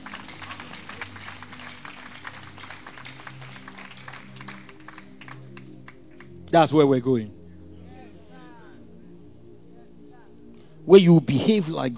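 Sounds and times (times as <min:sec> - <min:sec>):
crowd clapping: 0:00.0 - 0:06.4
speech: 0:06.5 - 0:07.4, 0:10.9 - 0:11.9.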